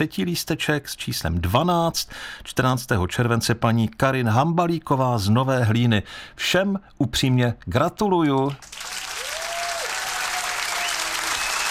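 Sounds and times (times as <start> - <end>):
speech: 0.0 - 8.9
crowd applauding contest winners: 8.6 - 11.6.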